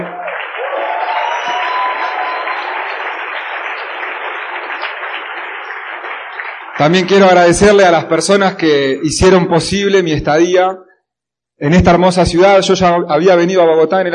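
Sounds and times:
audience applause: 0.0 - 8.1
speech: 6.8 - 10.8, 11.6 - 14.1.

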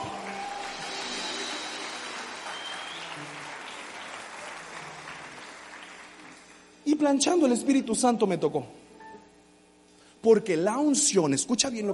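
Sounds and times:
audience applause for the band: 0.0 - 6.8
speech: 6.8 - 8.8, 10.3 - 11.9.

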